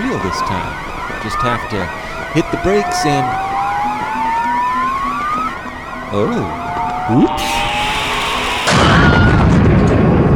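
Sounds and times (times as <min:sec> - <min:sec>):
speech: 0:00.2 - 0:03.4, 0:06.1 - 0:07.7
loud electronic proximity alarm warbling: 0:02.6 - 0:09.5
thin whistle rising in pitch: 0:03.9 - 0:09.6
rapid low pulses: 0:06.4 - 0:10.2.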